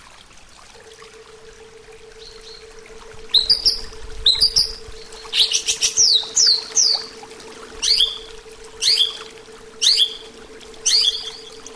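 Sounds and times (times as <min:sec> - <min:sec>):
low hum: 0:00.6 - 0:11.7
greater green leafbird chirping: 0:03.3 - 0:07.2, 0:07.8 - 0:11.6.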